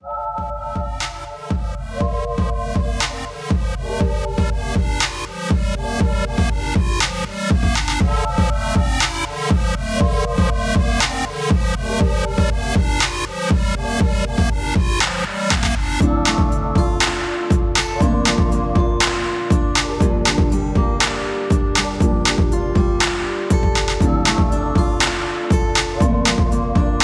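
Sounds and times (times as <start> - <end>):
rhythm: 0.4 - 27.0.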